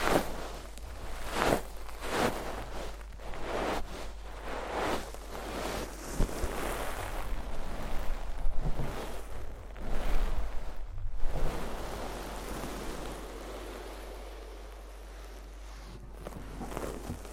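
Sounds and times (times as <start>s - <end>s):
quiet hiss: 0.0s - 17.3s
scraping and rustling during deep ear cleaning: 0.0s - 17.3s.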